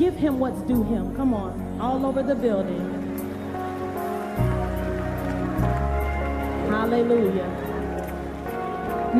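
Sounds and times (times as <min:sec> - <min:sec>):
speech: 0:00.2 - 0:02.9, 0:06.9 - 0:07.7
audience clapping hands: 0:02.5 - 0:09.1.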